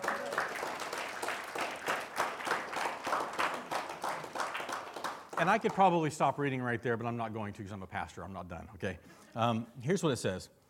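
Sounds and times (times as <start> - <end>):
audience clapping: 0.0 - 6.4
speech: 5.4 - 10.6.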